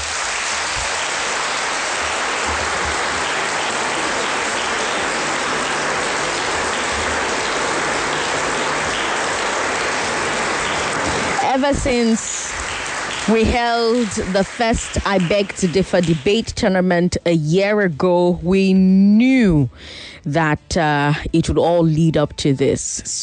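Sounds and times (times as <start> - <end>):
audience applause: 0.0 - 16.5
speech: 11.6 - 12.4, 13.3 - 23.2.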